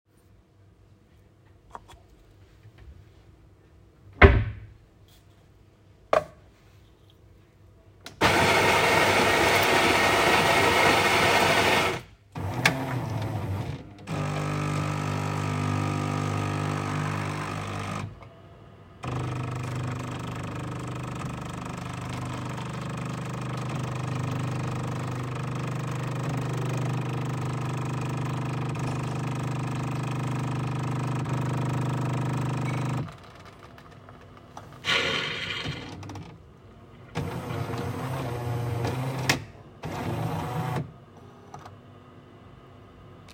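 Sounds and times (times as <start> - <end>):
coffee machine: 8.2 - 18.3, 19.0 - 36.2, 37.1 - 41.4.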